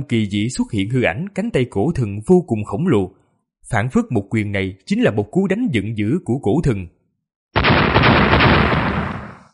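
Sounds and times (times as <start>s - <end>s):
speech: 0.0s - 7.0s
booming explosions: 7.6s - 9.5s.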